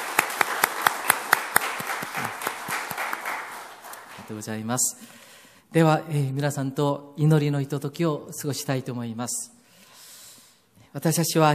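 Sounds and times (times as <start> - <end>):
audience clapping: 0.0 - 4.6
speech: 4.3 - 9.6, 10.9 - 11.5.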